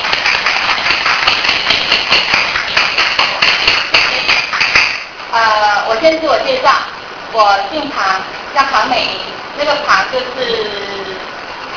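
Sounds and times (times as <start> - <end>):
group clapping hands: 0.0 - 5.2
speech: 6.0 - 10.9.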